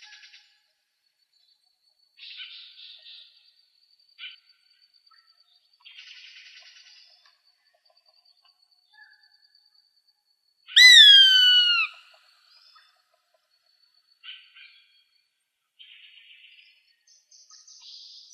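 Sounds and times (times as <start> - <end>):
birds of prey calling: 10.8 - 12.0.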